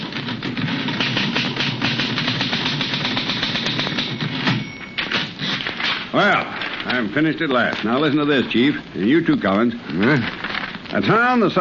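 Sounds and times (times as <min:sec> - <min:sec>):
typing on a manual typewriter: 0:00.0 - 0:07.0
speech: 0:06.2 - 0:11.6.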